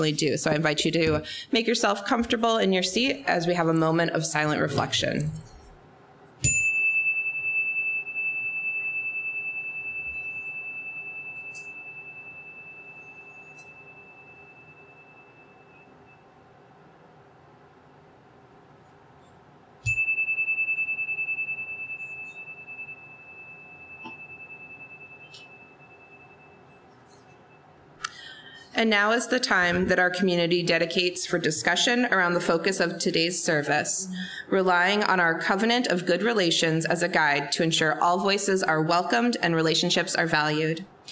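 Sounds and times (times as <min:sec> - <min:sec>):
speech: 0:00.0 - 0:05.5, 0:28.8 - 0:41.1
meditation chime: 0:06.4 - 0:16.4, 0:19.8 - 0:27.8.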